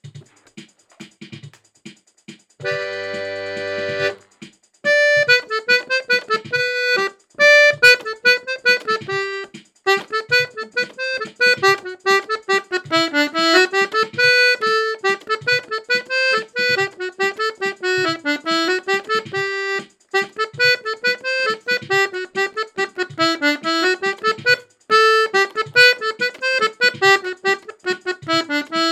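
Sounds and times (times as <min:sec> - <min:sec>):
mazurka in G: 0:02.6 - 0:28.9.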